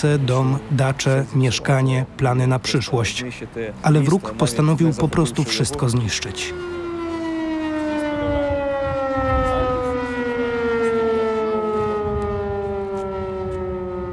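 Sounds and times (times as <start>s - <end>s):
speech: 0.0s - 6.8s
air raid alarm siren: 5.9s - 14.1s.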